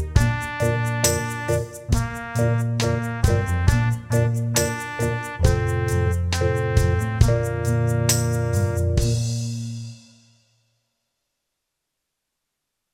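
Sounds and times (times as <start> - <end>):
backing track in Bb: 0.0 - 10.1.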